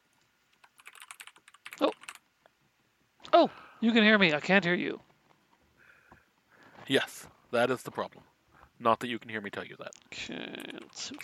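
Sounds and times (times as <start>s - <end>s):
typing on a computer keyboard: 0.6s - 2.2s, 10.6s - 11.2s
speech: 3.4s - 5.1s, 6.9s - 11.2s.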